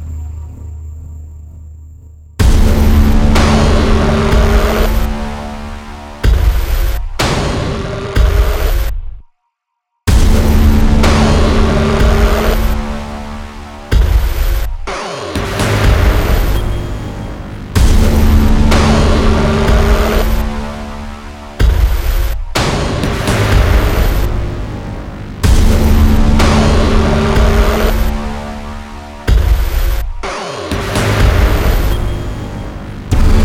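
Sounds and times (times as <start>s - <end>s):
movie impacts: 0.0s - 9.2s, 10.1s - 33.4s.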